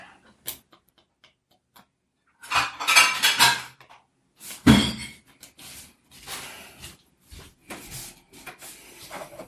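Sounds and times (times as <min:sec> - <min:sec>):
plates and cutlery clattering while serving salad: 0:02.4 - 0:03.9, 0:04.6 - 0:05.3.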